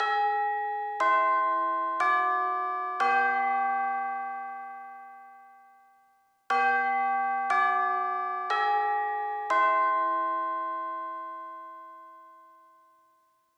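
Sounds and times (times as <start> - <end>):
chime: 0.0 - 13.5.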